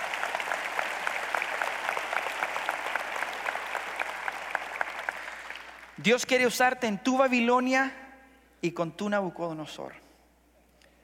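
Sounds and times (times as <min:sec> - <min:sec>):
audience applause: 0:00.0 - 0:06.0
speech: 0:06.0 - 0:08.0, 0:08.6 - 0:10.0.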